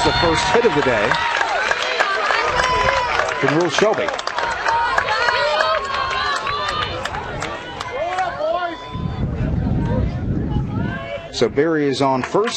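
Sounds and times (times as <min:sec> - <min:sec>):
North Shelby baseball fans cheering and applauding: 0:00.0 - 0:10.1
speech: 0:00.1 - 0:01.4, 0:03.4 - 0:04.3, 0:11.4 - 0:12.5.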